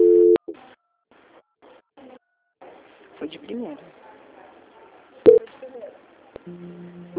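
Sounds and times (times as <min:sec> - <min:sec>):
telephone line tone while a call is being transferred: 0:00.0 - 0:00.4
speech: 0:03.3 - 0:04.0, 0:06.5 - 0:07.0.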